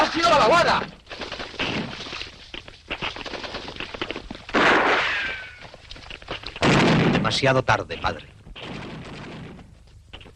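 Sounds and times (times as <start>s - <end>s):
speech: 0.1s - 1.0s, 7.3s - 8.3s
gunfire: 4.5s - 5.6s, 6.6s - 7.3s, 8.6s - 9.7s.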